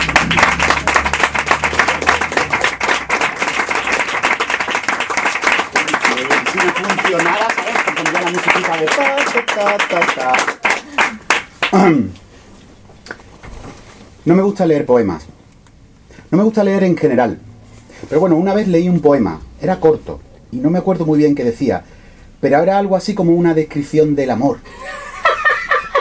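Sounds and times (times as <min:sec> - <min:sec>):
audience applause: 0:00.0 - 0:11.8
speech: 0:08.3 - 0:10.6, 0:11.7 - 0:12.2, 0:14.3 - 0:15.3, 0:16.3 - 0:17.5, 0:18.1 - 0:24.8
laughter: 0:24.7 - 0:25.9.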